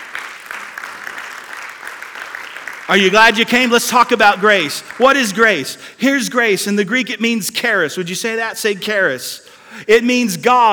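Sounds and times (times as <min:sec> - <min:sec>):
crowd applauding: 0:00.0 - 0:05.6
speech: 0:02.9 - 0:10.7.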